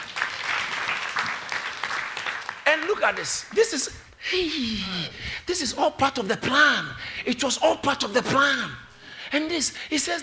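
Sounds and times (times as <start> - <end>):
audience clapping: 0.0 - 3.8
speech: 2.8 - 10.2.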